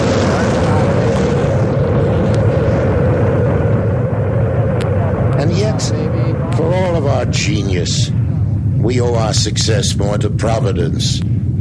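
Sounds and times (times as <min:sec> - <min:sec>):
rocket main engines roaring at launch: 0:00.0 - 0:11.5
speech: 0:07.2 - 0:11.5.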